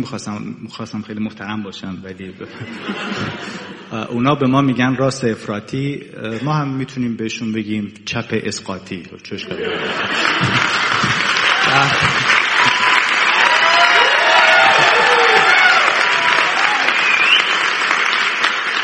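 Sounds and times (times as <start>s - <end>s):
speech: 0.0s - 10.8s, 11.7s - 12.3s
laughter: 2.4s - 3.9s, 9.4s - 13.0s, 14.4s - 15.5s
crowd cheering and shouting: 9.6s - 17.5s
large audience applause: 9.7s - 18.8s.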